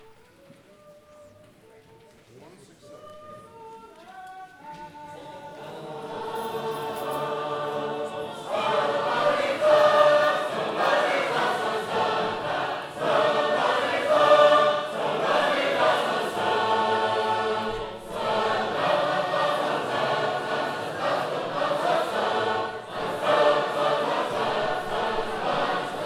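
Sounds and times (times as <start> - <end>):
sacred harp hymn singing: 3.4 - 26.0.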